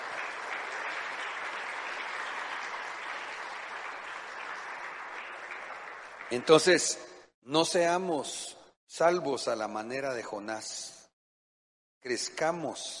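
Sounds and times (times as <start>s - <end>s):
crowd applause: 0.0s - 6.9s
speech: 6.3s - 11.0s, 12.0s - 12.9s.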